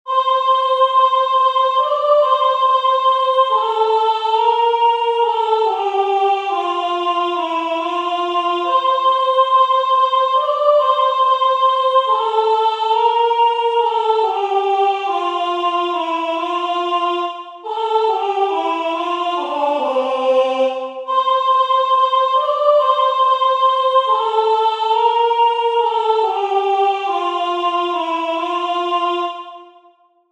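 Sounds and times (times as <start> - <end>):
soprano singing: 0.1 - 29.8.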